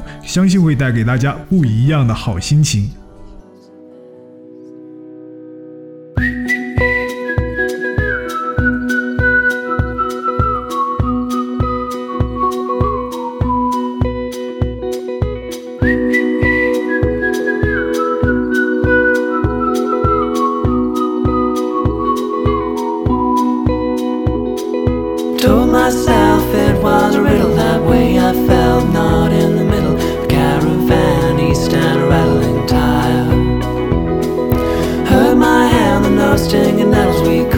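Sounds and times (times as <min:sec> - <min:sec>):
speech: 0:00.3 - 0:03.0
whistled melody in a song: 0:06.2 - 0:37.5
steady pulsing beat: 0:23.7 - 0:37.5
sustained chords: 0:25.4 - 0:37.5.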